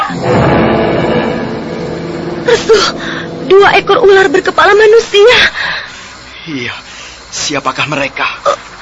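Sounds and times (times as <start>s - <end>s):
powerful slashing strike roaring burst: 0.1s - 4.5s
speech: 2.7s - 5.7s, 6.5s - 8.7s.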